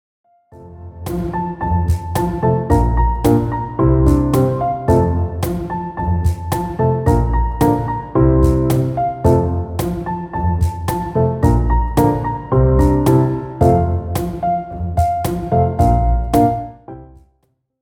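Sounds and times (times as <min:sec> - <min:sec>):
instrumental music: 0:00.3 - 0:17.4.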